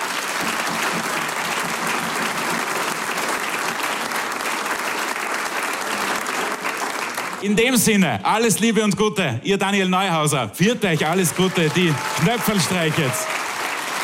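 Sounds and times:
audience applause: 0:00.0 - 0:07.6, 0:10.8 - 0:14.0
speech: 0:07.4 - 0:13.4.

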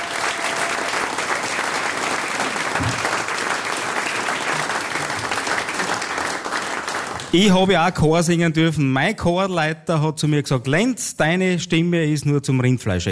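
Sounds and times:
audience applause: 0:00.0 - 0:07.5
speech: 0:07.3 - 0:13.1.

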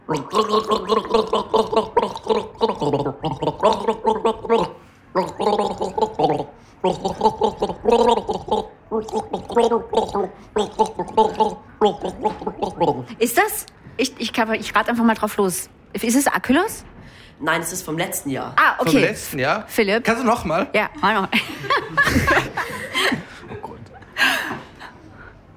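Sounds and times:
person gargling a sip of liquid while carrying a song melody: 0:00.0 - 0:13.2
speech: 0:00.1 - 0:01.4, 0:14.7 - 0:16.8, 0:17.4 - 0:21.5
laughter: 0:21.3 - 0:25.0.

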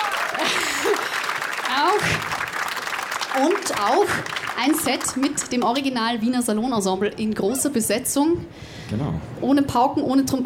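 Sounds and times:
vocal cheers: 0:00.0 - 0:00.6
audience clapping: 0:00.0 - 0:06.2
speech: 0:03.4 - 0:10.4.

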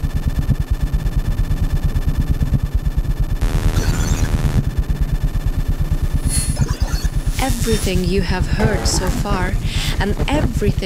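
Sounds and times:
amplified electrical noise from household devices: 0:00.0 - 0:10.8
hissing static: 0:03.4 - 0:05.2, 0:05.9 - 0:10.8
speech: 0:07.7 - 0:10.8.

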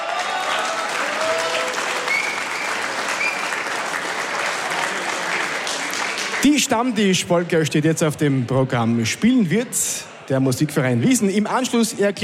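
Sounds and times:
audience applause: 0:00.0 - 0:06.8
speech: 0:06.5 - 0:12.2.

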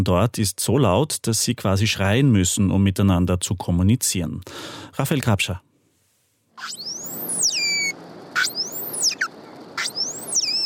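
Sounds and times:
speech: 0:00.0 - 0:05.7, 0:06.6 - 0:06.8
pilot whale calls: 0:06.6 - 0:10.6.

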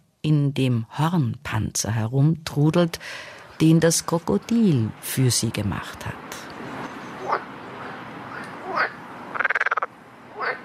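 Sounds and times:
speech: 0:00.2 - 0:06.5
frog croaking: 0:06.5 - 0:10.6.

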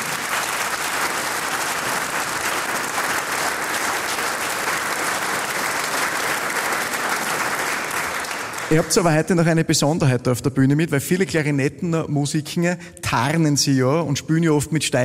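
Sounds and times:
applause from a sizable audience: 0:00.0 - 0:09.4
speech: 0:08.7 - 0:15.0.

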